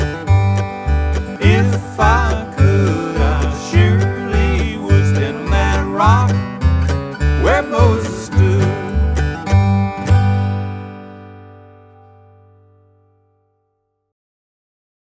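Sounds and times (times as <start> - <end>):
music track at 104 BPM: 0.0 - 13.2.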